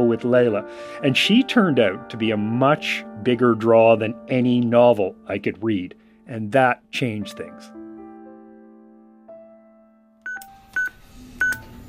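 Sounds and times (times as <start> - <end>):
speech: 0.0 - 7.8
security keypad button beeps: 10.2 - 11.7.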